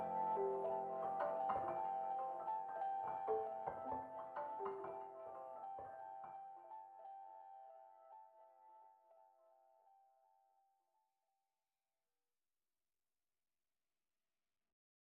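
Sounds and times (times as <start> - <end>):
pianos: 0.0 - 7.6.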